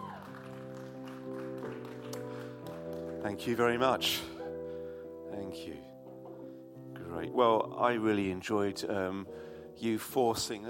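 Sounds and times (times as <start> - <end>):
audience cheering: 0.0 - 0.7
applause: 0.0 - 3.8
speech: 3.2 - 4.3, 7.4 - 10.6.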